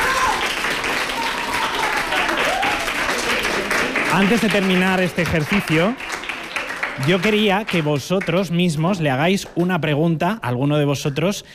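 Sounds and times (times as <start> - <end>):
audience applause: 0.0 - 8.8
speech: 4.1 - 6.1, 7.0 - 11.5.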